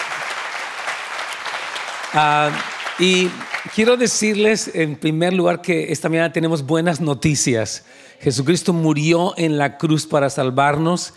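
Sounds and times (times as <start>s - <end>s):
church congregation applause welcoming first-time visitors: 0.0s - 4.7s
speech: 2.1s - 11.1s.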